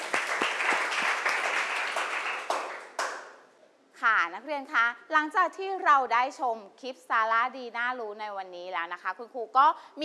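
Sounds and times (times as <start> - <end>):
applause: 0.0 - 3.4
speech: 4.2 - 10.0.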